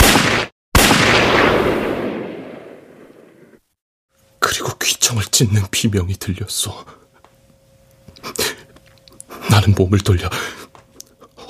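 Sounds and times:
gunshot: 0:00.0 - 0:03.6
speech: 0:04.8 - 0:07.1, 0:09.6 - 0:10.8.

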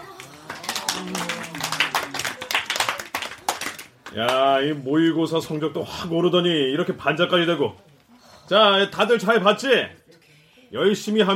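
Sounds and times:
class clapping: 0:00.0 - 0:04.7
speech: 0:04.1 - 0:07.9, 0:08.5 - 0:10.0, 0:10.7 - 0:11.3.

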